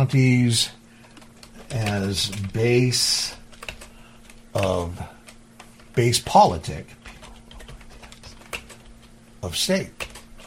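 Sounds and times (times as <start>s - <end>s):
speech: 0.0s - 0.8s, 1.7s - 3.4s, 4.5s - 5.2s, 6.0s - 7.0s, 9.4s - 10.0s
computer keyboard typing: 1.0s - 5.8s, 7.0s - 9.2s, 9.9s - 10.4s.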